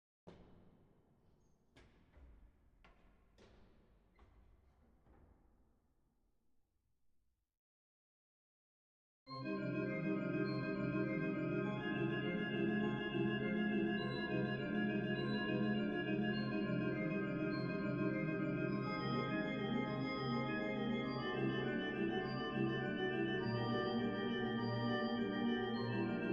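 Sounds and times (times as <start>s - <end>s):
organ prelude in C minor: 9.3s - 26.3s.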